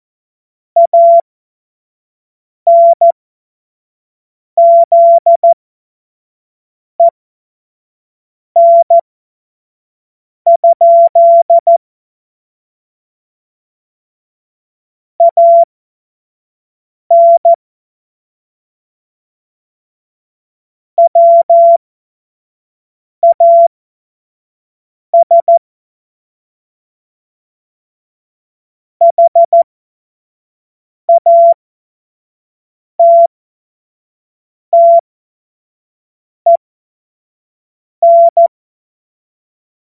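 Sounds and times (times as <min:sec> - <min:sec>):
Morse code course tones: 0:00.8 - 0:01.2, 0:02.7 - 0:03.1, 0:04.6 - 0:05.6, 0:08.6 - 0:09.0, 0:10.5 - 0:11.8, 0:17.1 - 0:17.5, 0:21.0 - 0:21.8, 0:23.2 - 0:23.7, 0:25.2 - 0:25.6, 0:29.0 - 0:29.6, 0:31.1 - 0:31.6, 0:33.0 - 0:33.3, 0:34.8 - 0:35.0, 0:38.0 - 0:38.5.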